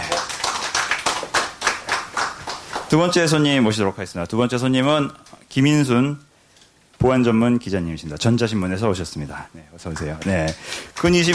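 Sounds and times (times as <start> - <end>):
audience clapping: 0.0 - 3.1, 9.9 - 11.3
speech: 2.9 - 6.3, 7.0 - 11.3.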